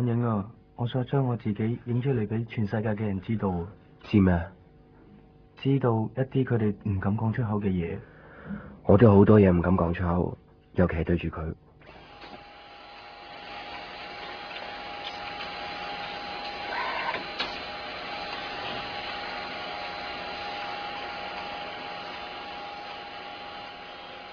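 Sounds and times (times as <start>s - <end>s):
speech: 0.0s - 4.6s, 5.6s - 11.6s
photocopier running: 11.8s - 24.3s.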